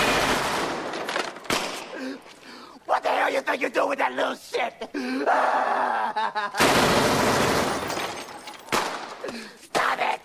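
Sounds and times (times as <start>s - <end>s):
gunshots: 0.0s - 2.0s, 6.6s - 9.2s
speech: 3.4s - 7.1s
laughter: 4.6s - 6.7s.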